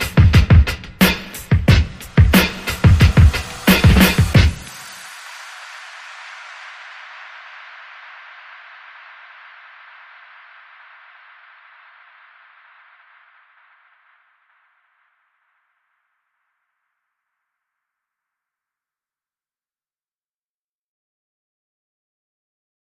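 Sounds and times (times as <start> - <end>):
soft core beat: 0.0 - 6.0.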